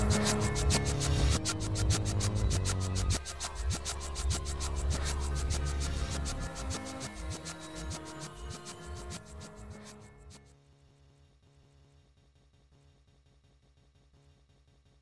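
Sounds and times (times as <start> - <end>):
pizzicato dance music: 0.0 - 9.8.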